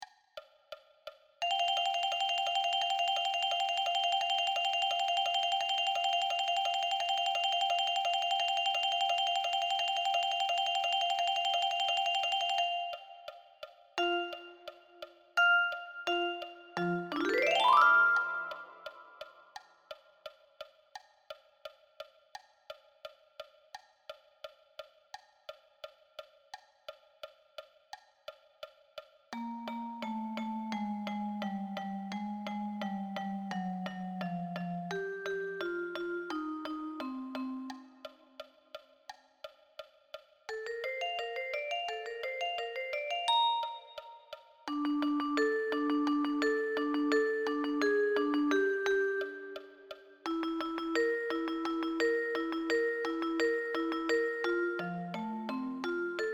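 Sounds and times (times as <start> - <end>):
vibraphone: 1.4 - 19.4, 29.4 - 38.2, 40.5 - 56.3.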